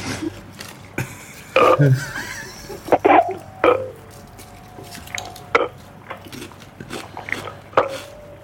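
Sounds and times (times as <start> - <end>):
laughter: 0.9 - 3.4
throaty croaks: 1.3 - 8.4
person burping out the digits of a number: 1.5 - 3.8.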